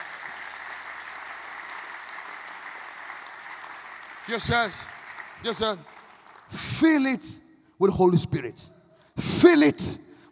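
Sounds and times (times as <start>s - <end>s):
audience clapping: 0.0s - 7.3s
speech: 4.2s - 10.0s.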